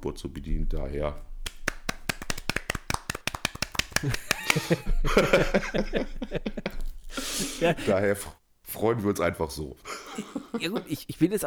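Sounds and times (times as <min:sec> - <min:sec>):
speech: 0:00.0 - 0:01.3, 0:04.0 - 0:11.4
hand clapping applause: 0:01.4 - 0:05.4
laughter: 0:03.9 - 0:08.1, 0:09.8 - 0:11.4.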